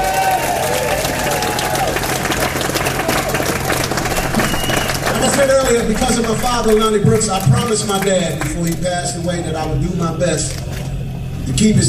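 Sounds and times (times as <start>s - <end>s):
audience applause and cheering: 0.0s - 8.8s
speech: 5.4s - 10.7s, 11.5s - 11.8s.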